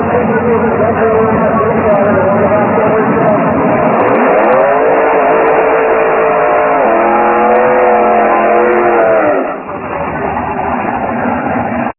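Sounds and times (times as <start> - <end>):
Duster 440 car burnout: 0.0 - 11.9.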